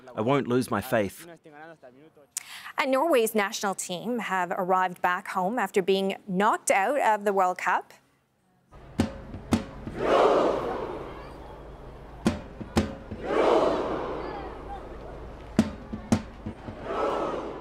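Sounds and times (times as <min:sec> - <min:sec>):
speech: 0:00.1 - 0:08.0, 0:10.0 - 0:10.7
crowd of Norwegian fans doing a rowing chant: 0:09.7 - 0:17.6.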